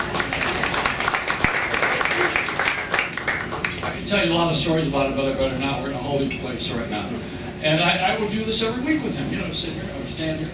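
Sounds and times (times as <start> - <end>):
audience applause: 0.0 - 4.0
speech: 4.1 - 10.5.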